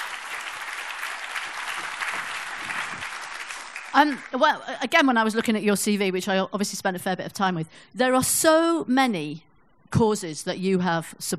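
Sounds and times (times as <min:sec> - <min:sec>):
audience applause: 0:00.0 - 0:04.4
speech: 0:03.9 - 0:11.3.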